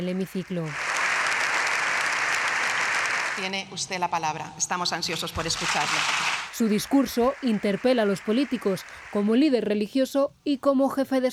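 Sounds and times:
speech: 0:00.0 - 0:00.9, 0:03.4 - 0:11.3
applause in parliament chamber: 0:00.6 - 0:03.6, 0:05.4 - 0:09.5.

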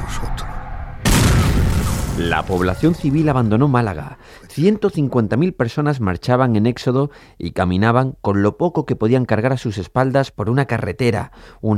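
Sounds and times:
gunfire from ships approaching through fog toward a coastal town: 0:00.9 - 0:04.3
low noise: 0:01.1 - 0:05.8
speech: 0:02.2 - 0:11.7.

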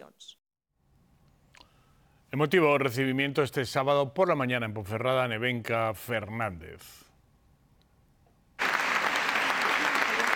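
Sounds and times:
speech: 0:02.3 - 0:07.0
long applause: 0:08.6 - 0:10.3.

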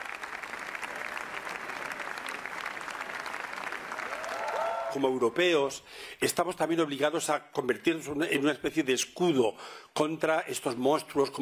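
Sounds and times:
audience ovation after film screening: 0:00.0 - 0:05.2
speech: 0:04.9 - 0:11.4.

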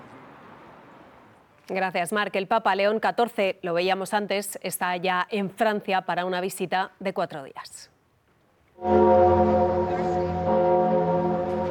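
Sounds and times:
speech: 0:01.7 - 0:07.9, 0:08.8 - 0:10.0
church bells ringing: 0:08.8 - 0:11.6.

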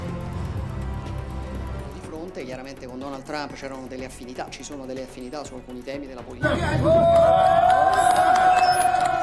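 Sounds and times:
speech: 0:02.4 - 0:08.8
crowd cheering after a rescue in Nepal: 0:06.4 - 0:09.2.

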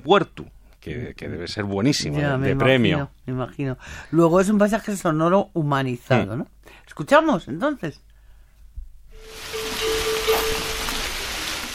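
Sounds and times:
speech: 0:00.0 - 0:08.1
cattle bell ringing: 0:09.2 - 0:11.1
murmuring water at night: 0:09.2 - 0:11.7.

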